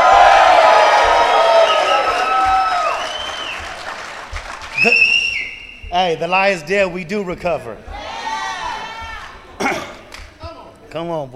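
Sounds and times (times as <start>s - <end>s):
audience applause at an addiction-recovery gathering in Houston, Texas: 0.0s - 5.4s
audience cheering at an addiction-recovery gathering in Houston, Texas: 0.0s - 6.2s, 7.9s - 9.4s
speech: 6.0s - 8.0s, 10.9s - 11.3s.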